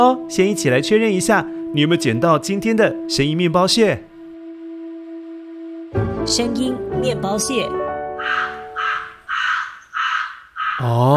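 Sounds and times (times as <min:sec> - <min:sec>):
speech: 0:00.0 - 0:04.1, 0:05.9 - 0:08.5, 0:10.8 - 0:11.1
crow cawing: 0:08.1 - 0:11.1.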